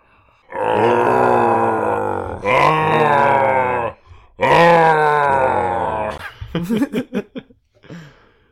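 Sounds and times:
voice imitating a monster's groaning howls of pain: 0.5 - 6.2
gasping grunts: 0.5 - 6.6
laughter: 6.1 - 7.5.

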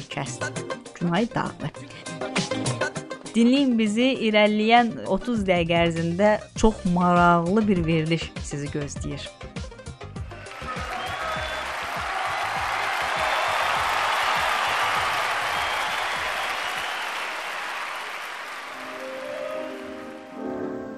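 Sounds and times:
speech: 0.1 - 9.5
applause from contest participants in Pesaro, Italy: 10.2 - 20.3.

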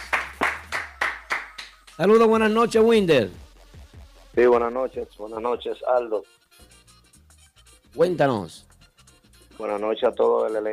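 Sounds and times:
hand claps: 0.0 - 2.4
speech: 2.0 - 3.4, 4.4 - 6.4, 7.9 - 8.7, 9.6 - 10.7.

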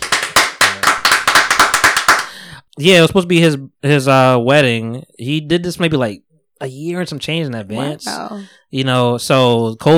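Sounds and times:
hand clapping applause: 0.0 - 2.4
speech: 2.8 - 9.9.

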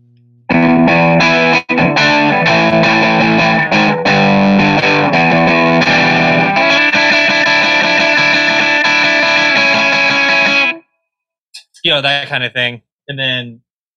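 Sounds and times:
overdriven electric guitar through AC30 amp: 0.0 - 10.8
speech: 11.9 - 13.6.

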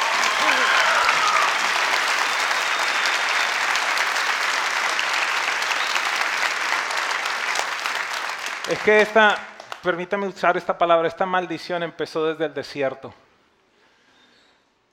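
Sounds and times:
audience applauding: 0.0 - 10.0
speech: 8.7 - 13.2.

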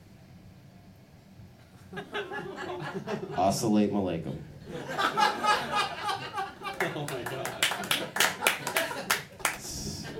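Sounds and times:
laughter: 1.9 - 3.6, 4.6 - 10.1
speech: 1.9 - 5.9
audience clapping: 6.6 - 10.0.

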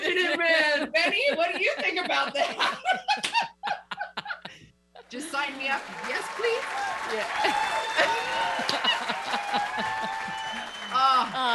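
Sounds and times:
laughter: 0.0 - 4.6, 7.1 - 11.5
hands clapping: 3.2 - 3.5, 5.3 - 11.5
small group cheering with whoops: 5.9 - 11.5.

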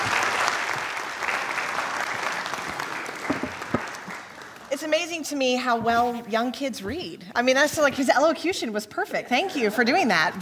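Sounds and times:
church audience round of applause after a child's reading: 0.0 - 5.0
speech: 4.8 - 10.4.

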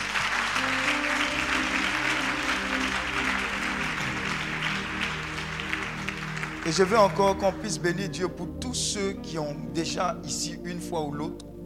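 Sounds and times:
church congregation applause during a French-speaking service: 0.0 - 8.1
speech: 6.7 - 11.6.

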